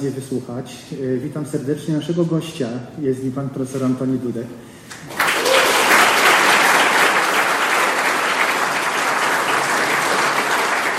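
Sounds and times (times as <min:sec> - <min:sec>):
speech: 0:00.0 - 0:05.2
audience applause: 0:05.1 - 0:10.9.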